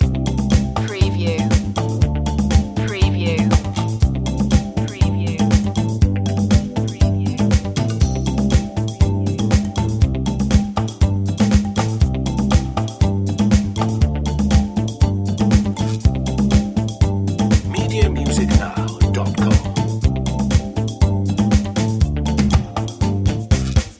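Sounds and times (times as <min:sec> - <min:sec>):
cafe noir music loop: 0:00.0 - 0:23.9.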